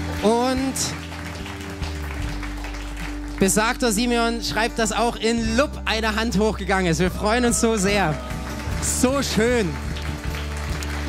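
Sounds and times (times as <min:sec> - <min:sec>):
audience applause: 0:00.0 - 0:03.8, 0:07.8 - 0:11.0
speech: 0:00.2 - 0:01.1, 0:03.4 - 0:09.9.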